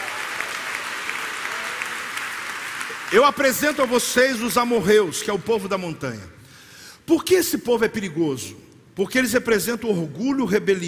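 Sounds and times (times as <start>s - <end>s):
audience applauding: 0.0s - 4.4s
speech: 3.1s - 6.4s, 7.1s - 10.8s.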